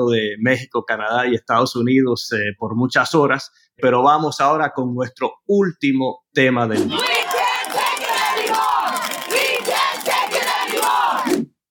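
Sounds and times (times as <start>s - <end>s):
speech: 0.0s - 7.2s
striking nurses shouting in protest: 6.8s - 11.4s.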